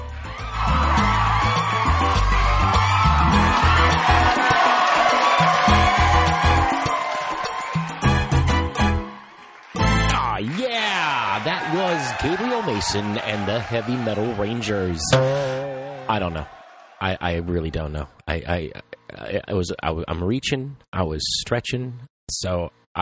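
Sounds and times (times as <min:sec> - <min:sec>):
crowd cheering, whooping and screaming for a band on a hosted show: 0:00.0 - 0:10.0, 0:11.0 - 0:14.6, 0:15.2 - 0:17.0
speech: 0:12.2 - 0:22.9.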